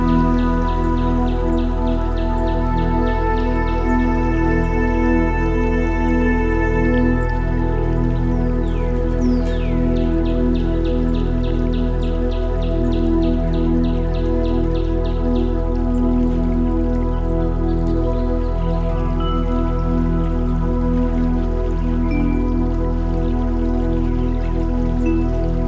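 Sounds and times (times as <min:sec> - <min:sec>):
rainforest ambience: 0:00.0 - 0:25.6.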